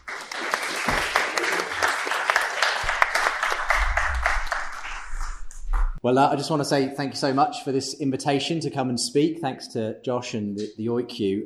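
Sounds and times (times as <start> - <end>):
audience applause: 0.0 - 5.4
speech: 6.0 - 11.4.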